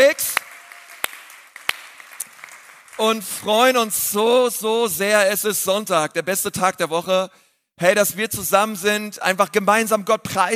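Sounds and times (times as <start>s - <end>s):
crowd applauding: 0.0s - 4.0s
speech: 3.0s - 10.5s.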